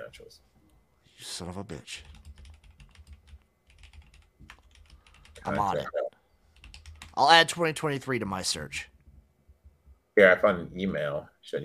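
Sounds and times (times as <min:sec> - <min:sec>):
speech: 0:00.1 - 0:00.6, 0:01.2 - 0:02.2, 0:05.4 - 0:06.0, 0:07.2 - 0:08.9, 0:10.2 - 0:11.6
typing on a computer keyboard: 0:02.0 - 0:05.4, 0:06.6 - 0:07.2.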